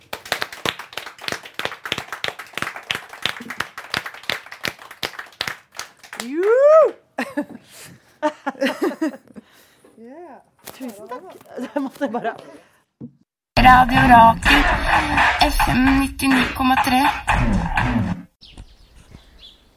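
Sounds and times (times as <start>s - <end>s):
audience applause: 0.0s - 6.8s
speech: 6.2s - 8.0s, 8.6s - 9.3s, 10.0s - 12.7s, 13.6s - 18.2s
laughter: 7.2s - 9.5s, 11.5s - 12.5s.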